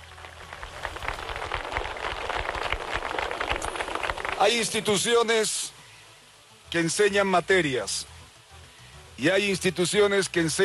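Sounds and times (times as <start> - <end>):
audience applause: 0.0 - 5.0
speech: 4.4 - 5.6, 6.7 - 8.1, 9.2 - 10.6.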